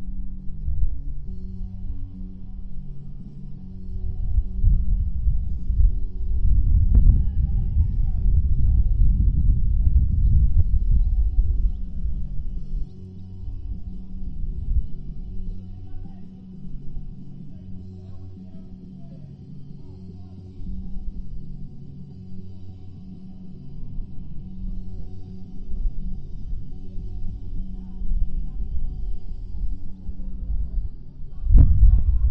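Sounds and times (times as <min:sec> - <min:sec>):
quadrangle soundscape: 0:00.0 - 0:32.3.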